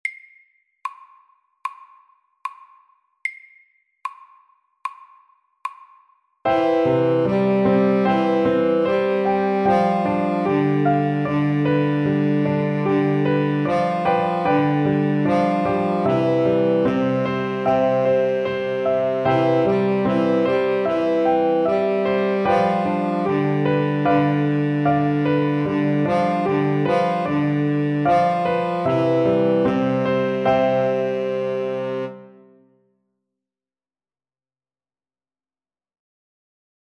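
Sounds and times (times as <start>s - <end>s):
slow Welsh melody: 6.5s - 32.8s.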